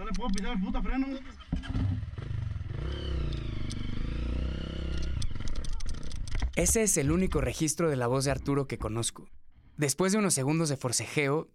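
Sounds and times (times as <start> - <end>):
speech: 0.1 - 2.0, 6.6 - 11.5
motorcycle engine revving while stuck: 1.3 - 6.5.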